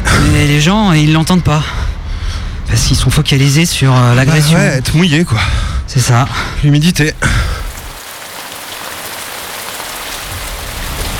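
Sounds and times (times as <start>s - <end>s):
speech: 0.4s - 1.8s, 2.7s - 7.5s
rain falling: 7.1s - 11.1s.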